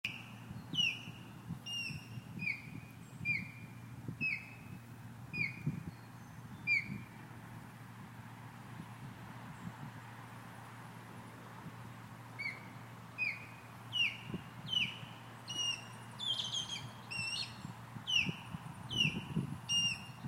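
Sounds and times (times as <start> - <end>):
female osprey calling male: 0.0 - 4.7, 5.3 - 6.0, 6.6 - 7.1, 12.4 - 20.2.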